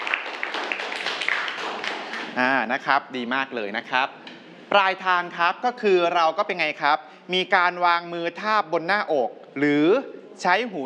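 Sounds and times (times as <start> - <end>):
students clapping in a classroom: 0.0 - 2.4
speech: 2.4 - 10.8.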